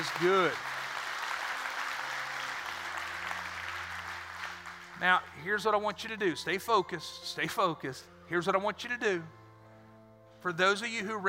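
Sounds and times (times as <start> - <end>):
speech: 0.0 - 0.7, 5.0 - 9.4, 10.4 - 11.2
crowd applause: 0.0 - 5.0.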